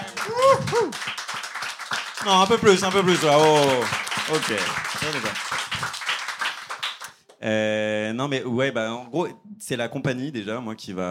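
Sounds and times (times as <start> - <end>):
rising vocal whoop: 0.0 - 1.0
audience clapping: 0.0 - 7.4
speech: 2.2 - 6.0, 7.4 - 11.0.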